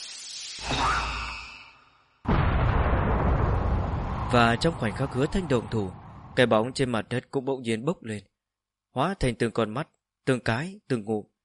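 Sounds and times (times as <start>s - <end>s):
explosive thunder blast from a powerful punch: 2.3s - 6.9s
speech: 4.3s - 8.3s, 9.0s - 11.3s.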